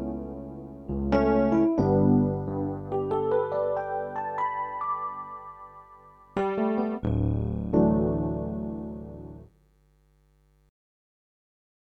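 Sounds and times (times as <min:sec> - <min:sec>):
pianos: 0:00.0 - 0:09.5.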